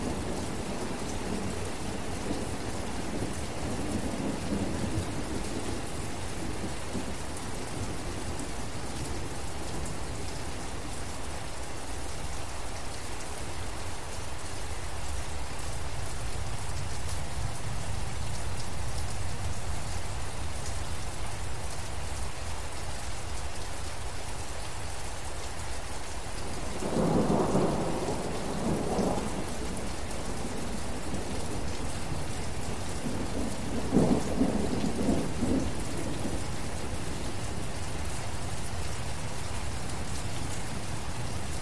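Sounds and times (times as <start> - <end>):
thunder rumbling in a forest: 0.0 - 10.0, 26.5 - 41.5
steady rain in a forest: 0.0 - 41.5.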